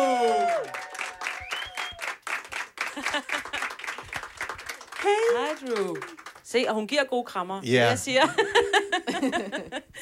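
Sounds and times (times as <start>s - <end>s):
scattered cheers, whoops and shouts: 0.0s - 2.2s
small group clapping: 0.0s - 6.8s
laughter: 2.9s - 3.8s, 8.2s - 10.0s
speech: 5.0s - 10.0s.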